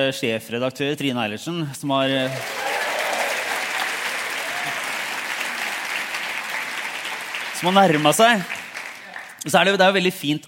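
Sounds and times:
speech: 0.0s - 2.7s, 7.6s - 8.6s, 9.4s - 10.4s
audience applause: 2.2s - 9.5s.

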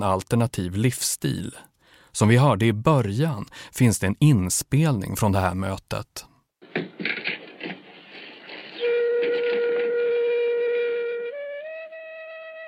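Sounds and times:
speech: 0.0s - 6.3s
flute playing: 8.8s - 12.6s.

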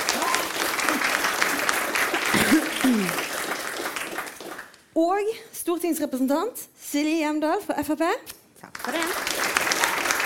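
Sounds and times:
crowd applauding: 0.0s - 4.8s, 8.7s - 10.2s
speech: 5.0s - 9.3s.

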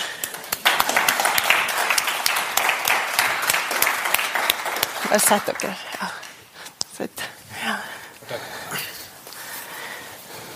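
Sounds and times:
audience applauding: 0.0s - 6.5s
speech: 5.1s - 6.2s, 7.0s - 7.3s.

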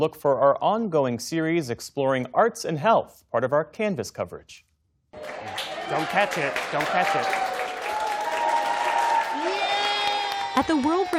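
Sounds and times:
speech: 0.0s - 7.5s, 10.6s - 11.1s
Mayo Clinic health professionals clapping and cheering: 5.2s - 11.1s.

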